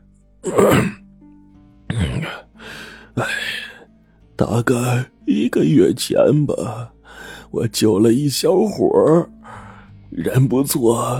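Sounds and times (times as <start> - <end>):
speech: 0.4 - 1.0, 3.2 - 3.4, 4.4 - 11.1
old man clearing his throat: 0.5 - 1.0, 1.9 - 2.4.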